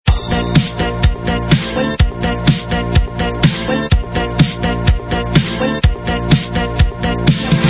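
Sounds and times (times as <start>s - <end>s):
MIDI music: 0.1s - 7.6s.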